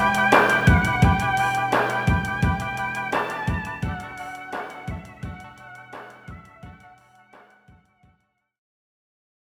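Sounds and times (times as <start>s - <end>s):
Drumtraks drum machine: 0.0s - 6.9s
OB 8 synthesizer: 0.0s - 7.8s.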